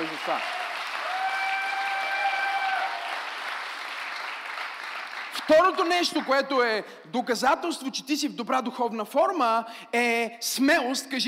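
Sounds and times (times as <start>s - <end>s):
audience applauding: 0.0s - 6.4s
speech: 0.3s - 0.6s, 5.5s - 11.2s.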